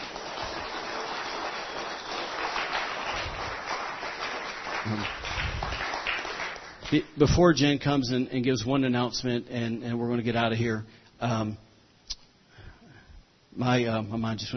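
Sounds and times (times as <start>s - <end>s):
audience hand clapping: 0.0s - 7.1s
speech: 4.9s - 5.2s, 6.9s - 11.6s, 13.6s - 14.5s.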